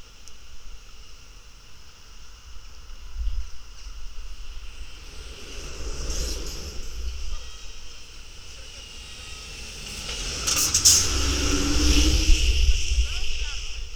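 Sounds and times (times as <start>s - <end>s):
traffic noise at an intersection recorded by a contact mic: 3.8s - 13.9s.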